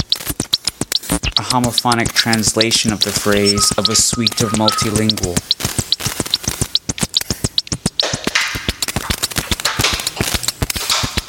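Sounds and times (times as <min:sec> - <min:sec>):
snare drum sound made from two rubbed paper sheets: 0:00.0 - 0:11.2
speech: 0:01.5 - 0:05.6.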